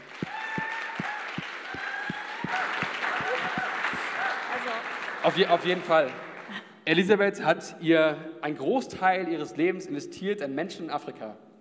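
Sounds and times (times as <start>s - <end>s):
audience applause: 0.0s - 6.7s
speech: 5.2s - 6.3s, 6.9s - 11.5s.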